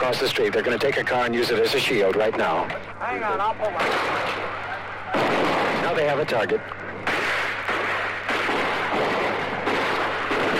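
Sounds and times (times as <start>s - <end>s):
speech: 0.1s - 6.8s
gunshots fired fast and heavy in Detroit: 3.8s - 10.5s.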